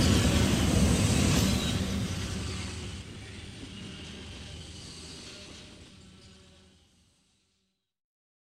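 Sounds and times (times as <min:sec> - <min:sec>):
train passing: 0:00.0 - 0:07.6.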